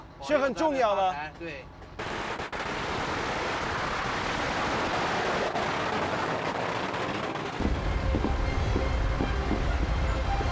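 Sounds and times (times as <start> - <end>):
speech: 0.2 - 2.2
firecrackers popping: 2.0 - 8.9
steady heavy rumbling roar: 2.0 - 10.4.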